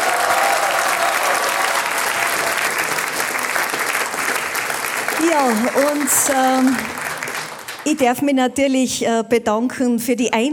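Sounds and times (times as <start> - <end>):
audience applause: 0.0 - 8.0
speech: 5.4 - 7.0, 7.8 - 10.5.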